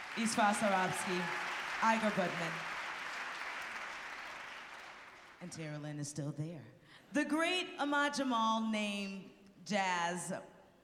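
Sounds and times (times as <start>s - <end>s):
audience applause: 0.0s - 5.4s
speech: 0.2s - 2.7s, 5.4s - 10.5s.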